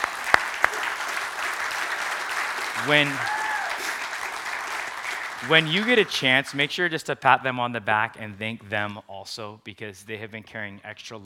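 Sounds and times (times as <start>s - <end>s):
audience applause: 0.0s - 6.9s
speech: 2.8s - 3.4s, 5.4s - 11.2s.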